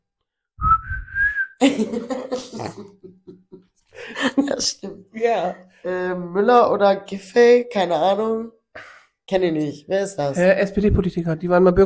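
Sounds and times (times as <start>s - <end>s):
person whistling a tune: 0.6s - 1.6s
speech: 1.6s - 3.3s, 4.6s - 8.6s, 9.3s - 11.8s
laughter: 1.6s - 4.8s.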